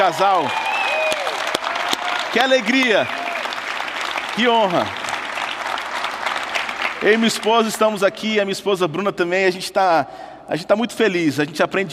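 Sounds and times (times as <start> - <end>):
speech: 0.0 - 0.7, 2.3 - 3.2, 4.4 - 5.0, 7.0 - 11.9
audience applauding: 0.0 - 7.8.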